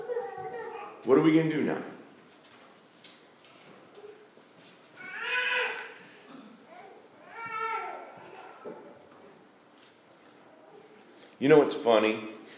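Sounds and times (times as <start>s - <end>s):
child babbling: 0.0s - 1.0s, 6.7s - 8.8s
child fussing in a room: 0.0s - 1.0s, 5.0s - 8.8s
murmur: 0.0s - 1.1s, 3.2s - 11.2s
speech: 1.0s - 2.0s, 11.4s - 12.3s.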